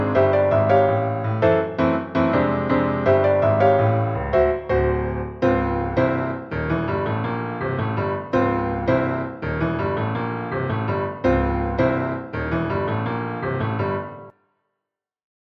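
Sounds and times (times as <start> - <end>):
piano accompaniment for an audition: 0.0 - 14.3.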